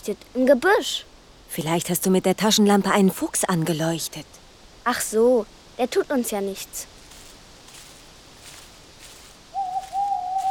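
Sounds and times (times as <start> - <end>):
speech: 0.0 - 7.0
tawny owl calling at night: 9.5 - 10.4.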